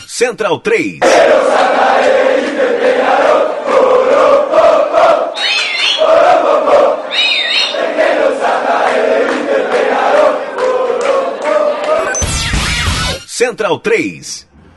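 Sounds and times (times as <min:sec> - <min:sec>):
speech: 0:00.2 - 0:07.2, 0:13.4 - 0:14.5
football fans chanting in a stadium: 0:01.0 - 0:12.1.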